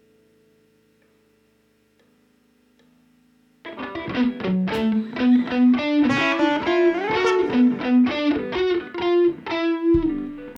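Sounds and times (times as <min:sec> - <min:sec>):
ambient guitar: 0:03.7 - 0:10.5.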